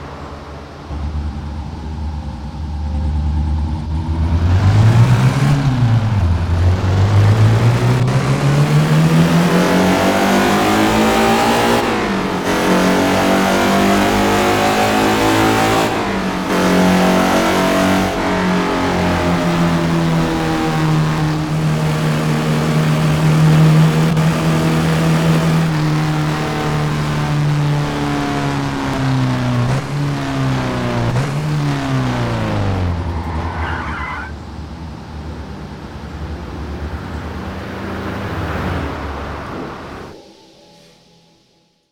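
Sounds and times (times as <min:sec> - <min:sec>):
Porsche 918 Spyder engine: 0:00.0 - 0:40.6.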